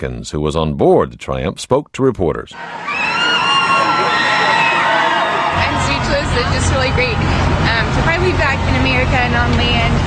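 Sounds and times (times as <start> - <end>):
speech: 0.0 - 3.2, 6.1 - 10.0
Carnival cruise ship Triumph passengers cheering and whooping on return to port: 2.6 - 8.9.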